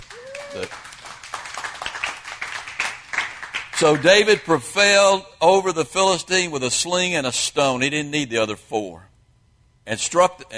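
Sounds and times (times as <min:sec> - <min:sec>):
audience clapping: 0:00.0 - 0:04.4
speech: 0:00.5 - 0:00.8, 0:03.8 - 0:09.1, 0:09.8 - 0:10.5.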